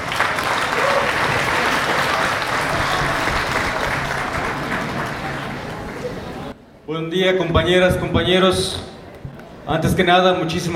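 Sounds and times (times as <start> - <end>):
audience applause at the inauguration of a national assembly: 0.0 - 6.5
speech: 6.9 - 8.9, 9.7 - 10.7.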